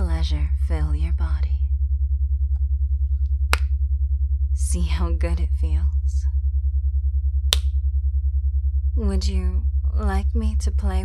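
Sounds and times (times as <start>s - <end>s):
low electrical hum: 0.0s - 11.0s
speech: 0.2s - 1.5s, 4.7s - 6.0s, 9.0s - 11.0s
finger snap: 3.5s - 3.7s, 7.5s - 7.8s.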